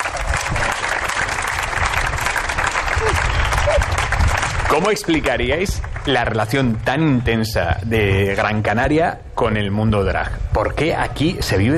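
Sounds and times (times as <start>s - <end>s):
audience applause: 0.0s - 6.4s
speech: 4.7s - 11.7s.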